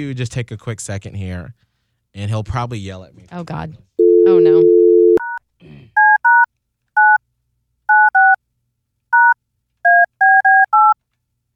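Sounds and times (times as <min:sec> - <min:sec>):
speech: 0:00.0 - 0:04.8
two-tone telephone keypad dialing beeps: 0:04.0 - 0:05.4, 0:06.0 - 0:07.2, 0:07.9 - 0:08.4, 0:09.2 - 0:11.0.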